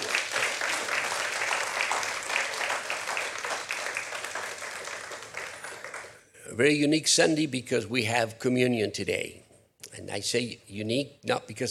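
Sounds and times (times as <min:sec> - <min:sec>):
audience clapping hands: 0:00.0 - 0:06.3
speech: 0:06.6 - 0:09.4, 0:10.0 - 0:11.7.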